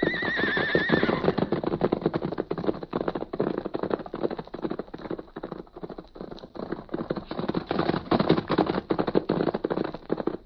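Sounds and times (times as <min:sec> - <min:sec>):
milk-white horse whinnying: 0:00.0 - 0:01.6
milk-white horses galloping: 0:00.0 - 0:10.4.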